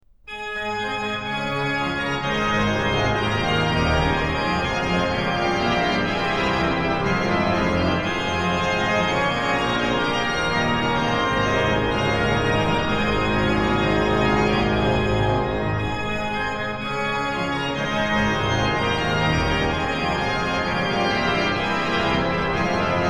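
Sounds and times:
organ: 0.3s - 23.0s.

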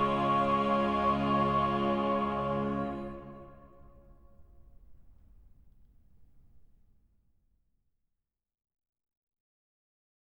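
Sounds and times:
chorale: 0.0s - 5.0s.

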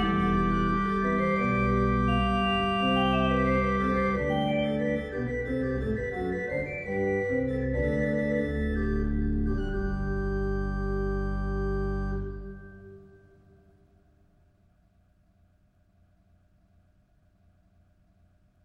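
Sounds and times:
organ chorale prelude: 0.0s - 13.4s.

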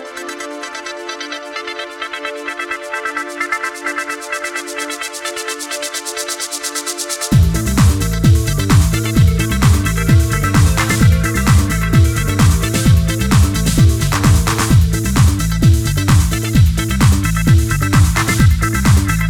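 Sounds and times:
ambience: 7.3s - 19.2s.

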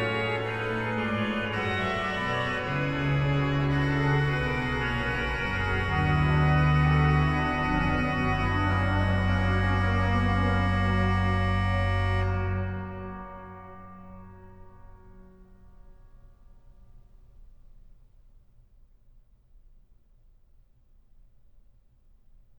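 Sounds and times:
organ playing chorale preludes: 0.0s - 15.6s.

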